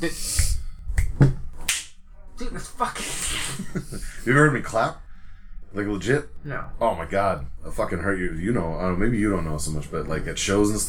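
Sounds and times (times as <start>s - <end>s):
speech: 0.0s - 0.4s, 1.2s - 1.4s, 2.8s - 5.0s, 5.7s - 10.8s
finger snapping: 0.3s - 1.9s.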